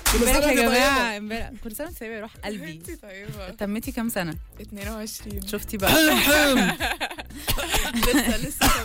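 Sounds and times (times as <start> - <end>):
speech: 0.1 - 8.8
snickering laughter: 5.9 - 8.8
choking coughing fit: 7.4 - 8.8.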